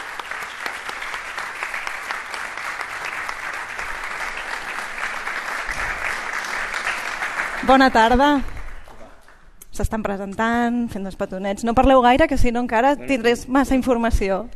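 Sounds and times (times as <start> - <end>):
audience clapping: 0.0 - 9.5
speech: 7.7 - 8.5, 9.8 - 14.5.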